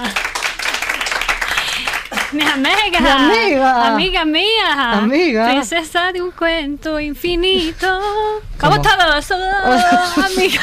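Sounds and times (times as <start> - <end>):
audience applauding: 0.0 - 3.4
speech: 2.3 - 10.6.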